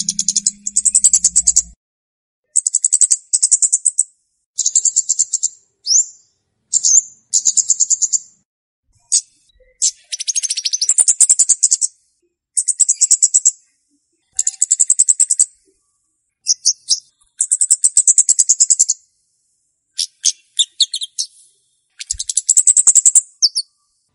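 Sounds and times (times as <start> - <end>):
flowerpecker chirps used as a lure for wild birds: 0.0 - 1.8, 2.5 - 8.3, 9.1 - 11.9, 12.6 - 13.6, 14.4 - 15.6, 16.4 - 19.0, 20.0 - 23.8.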